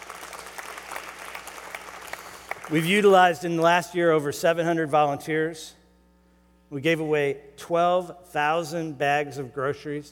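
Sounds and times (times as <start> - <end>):
audience applause: 0.0 - 2.9
speech: 2.7 - 5.8, 6.7 - 10.1.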